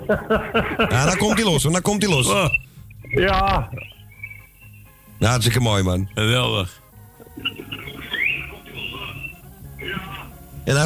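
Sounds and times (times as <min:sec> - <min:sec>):
laughter: 0:00.0 - 0:01.6
speech: 0:00.1 - 0:03.9, 0:05.2 - 0:06.8, 0:10.7 - 0:10.8
cockatiel singing and whistling: 0:02.2 - 0:05.0, 0:07.4 - 0:10.3.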